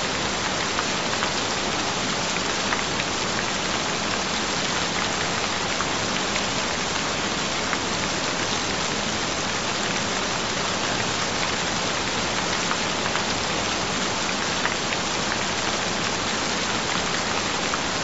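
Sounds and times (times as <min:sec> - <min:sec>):
gentle rain: 0:00.0 - 0:18.0.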